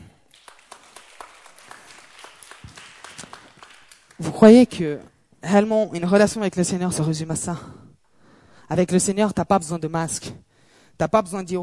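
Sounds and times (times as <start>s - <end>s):
audience applause: 0.3s - 4.6s
speech: 4.2s - 7.8s, 8.7s - 10.4s, 11.0s - 11.6s.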